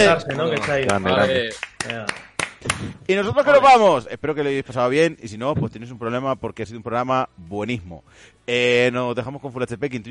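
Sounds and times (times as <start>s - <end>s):
speech: 0.0s - 10.0s
scattered hand claps: 0.3s - 3.0s.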